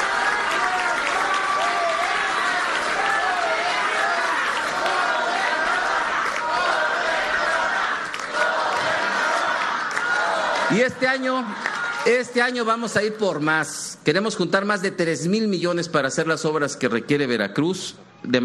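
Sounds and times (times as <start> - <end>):
scattered cheers and shouting voices: 0.0 - 12.3
large crowd applauding: 0.0 - 12.8
speech: 10.7 - 18.4.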